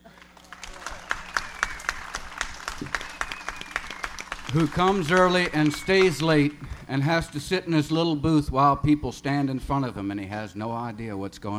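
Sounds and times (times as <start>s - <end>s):
audience applause: 0.0s - 7.5s
speech: 4.5s - 11.5s.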